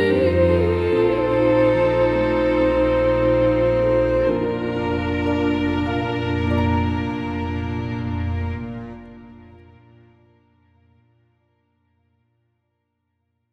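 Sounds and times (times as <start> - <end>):
light opera trio singing in German: 0.0 - 8.9.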